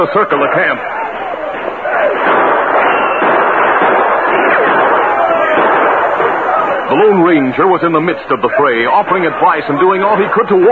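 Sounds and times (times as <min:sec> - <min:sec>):
speech: 0:00.0 - 0:01.0, 0:06.9 - 0:10.6
dramatized gunfire in a Western battle scene: 0:01.4 - 0:07.3.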